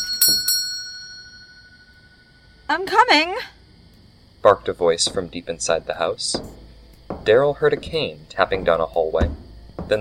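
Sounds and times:
pull-cord doorbell jangling behind a door: 0.0s - 1.6s
speech: 2.7s - 3.6s, 4.4s - 6.6s, 7.2s - 9.9s.

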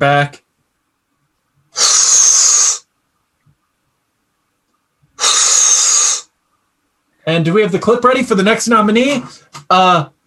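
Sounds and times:
speech: 0.0s - 0.4s, 1.8s - 2.5s, 7.3s - 10.2s
person blowing up a balloon: 1.7s - 2.9s, 5.2s - 6.4s.

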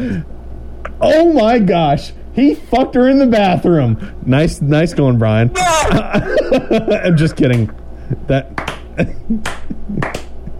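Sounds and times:
speech: 1.0s - 10.5s
laughter: 5.6s - 10.5s
clapping from the peanut gallery: 7.5s - 7.7s, 8.6s - 10.5s.

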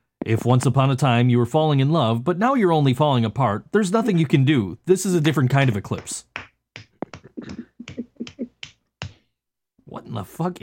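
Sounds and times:
speech: 0.3s - 6.4s, 10.1s - 10.6s
hand clapping: 5.4s - 9.2s.

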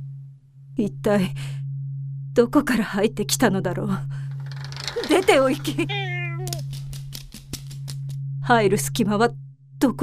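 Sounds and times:
low steady hum: 0.0s - 6.8s, 7.9s - 10.0s
speech: 0.8s - 1.6s, 2.4s - 4.2s, 5.1s - 6.1s, 8.5s - 10.0s
black cat meowing: 5.0s - 6.7s.

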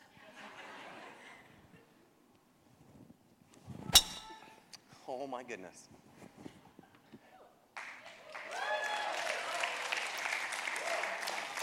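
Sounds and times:
speech: 5.1s - 6.1s
audience clapping: 7.8s - 11.6s.

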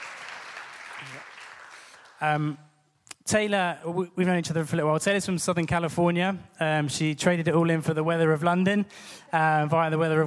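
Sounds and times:
audience applause welcoming a guest: 0.0s - 2.2s
speech: 1.0s - 1.4s, 2.2s - 10.2s.

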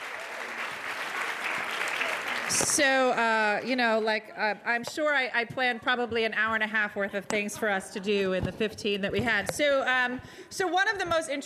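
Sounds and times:
audience applause: 0.0s - 2.8s
speech: 2.5s - 11.4s.

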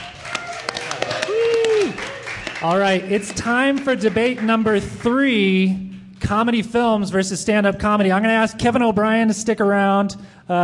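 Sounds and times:
person cheering: 0.0s - 3.3s
audience applause for comedians: 0.0s - 5.1s
speech: 2.6s - 10.6s.

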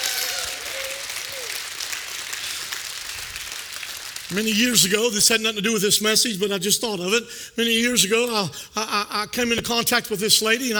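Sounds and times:
audience clapping hands: 0.0s - 5.2s
speech: 4.3s - 10.7s.

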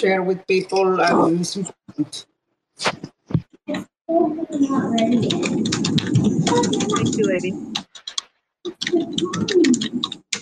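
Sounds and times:
speech: 0.0s - 7.9s, 8.6s - 10.2s
typing on a keyboard: 5.0s - 10.4s.

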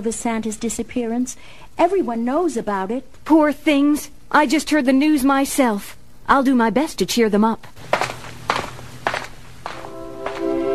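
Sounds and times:
speech: 0.0s - 7.9s
footsteps: 7.8s - 10.7s.

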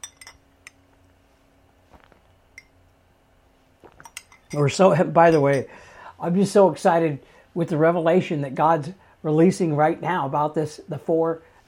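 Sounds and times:
glass clinking against a hard surface: 0.0s - 0.8s, 2.5s - 2.8s, 3.9s - 5.8s
speech: 4.5s - 11.6s.

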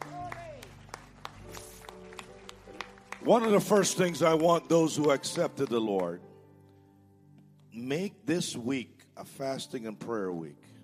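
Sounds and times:
audience applause: 0.0s - 6.2s
speech: 3.2s - 6.3s, 7.8s - 10.7s.

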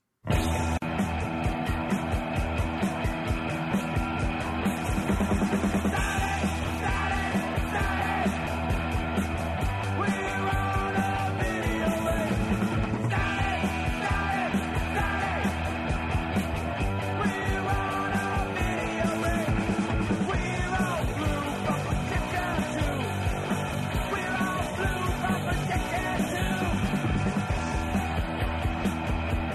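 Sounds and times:
loud fast punk rock song with distorted guitars, drums and shouted vocal: 0.2s - 29.5s.

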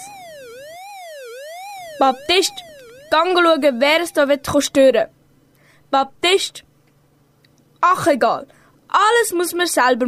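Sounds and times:
alarm going off: 0.0s - 5.0s
speech: 2.0s - 5.2s, 5.9s - 6.7s, 7.8s - 10.0s.

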